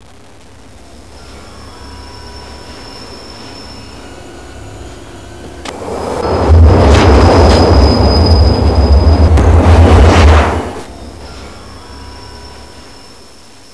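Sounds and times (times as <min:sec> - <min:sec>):
train: 0:00.2 - 0:13.7.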